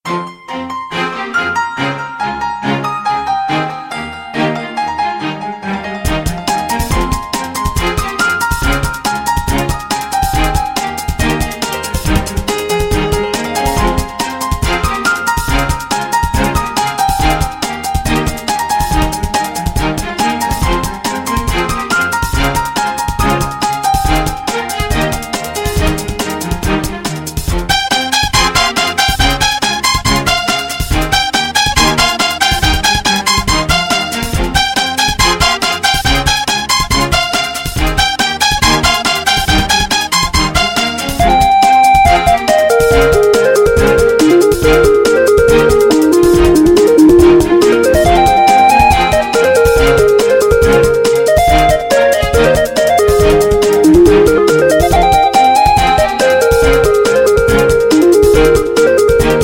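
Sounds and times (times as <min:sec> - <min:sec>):
piano: 0:00.0 - 0:59.4
strings: 0:00.1 - 0:59.4.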